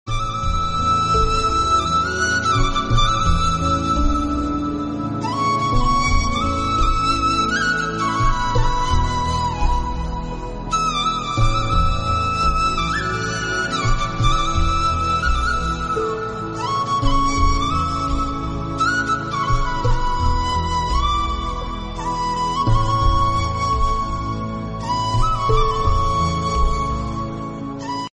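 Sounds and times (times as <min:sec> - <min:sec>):
flute: 0:00.0 - 0:28.1.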